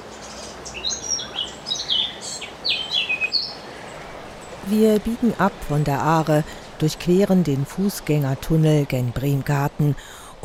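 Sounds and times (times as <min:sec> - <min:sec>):
Eurasian blackcap singing: 0:00.0 - 0:05.6
speech: 0:04.7 - 0:10.4.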